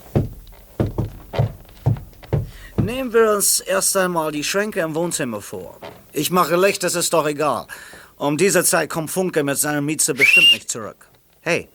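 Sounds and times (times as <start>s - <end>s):
knocking on a floor: 0.0s - 3.2s
speech: 2.9s - 11.7s.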